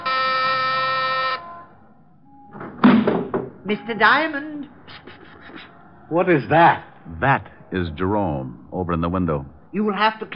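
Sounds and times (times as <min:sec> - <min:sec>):
doorbell ringing: 0:00.0 - 0:01.6
speech: 0:03.7 - 0:05.0, 0:06.1 - 0:10.3.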